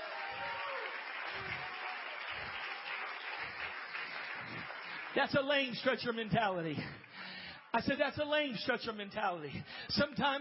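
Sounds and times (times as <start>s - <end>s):
audience clapping hands: 0.0s - 7.4s
speech: 5.2s - 10.3s.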